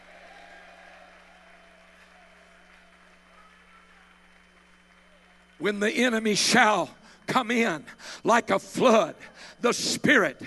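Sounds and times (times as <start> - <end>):
audience shouting: 0.0 - 4.1
audience clapping: 0.0 - 8.0
speech: 5.6 - 10.4.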